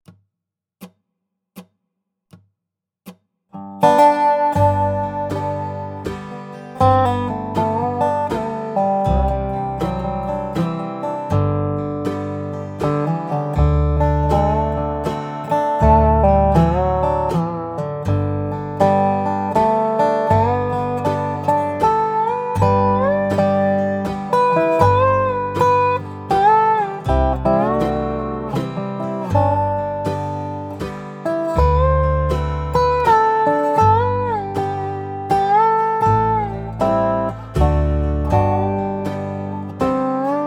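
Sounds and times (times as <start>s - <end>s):
dobro playing with backing track: 3.6s - 40.4s.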